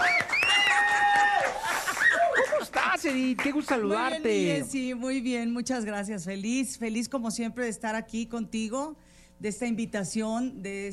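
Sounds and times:
audience applause: 0:00.0 - 0:04.1
speech: 0:03.0 - 0:10.9.

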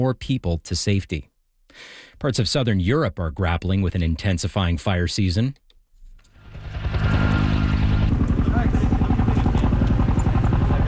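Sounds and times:
speech: 0:00.0 - 0:05.6
helicopter flying over wildfire: 0:06.4 - 0:10.8.

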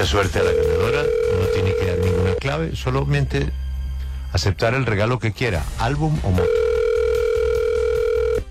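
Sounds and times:
speech: 0:00.0 - 0:03.6, 0:04.3 - 0:06.6
ringback tone of an outgoing phone call: 0:00.1 - 0:02.4, 0:06.4 - 0:08.4.

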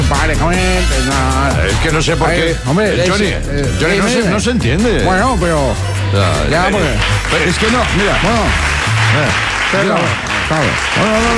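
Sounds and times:
speech: 0:00.4 - 0:11.3
applause: 0:06.7 - 0:11.3.

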